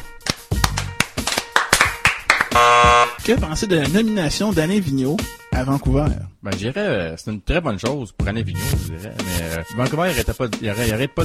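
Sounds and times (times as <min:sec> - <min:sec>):
hand clapping: 0:00.0 - 0:02.6
speech: 0:02.6 - 0:11.2.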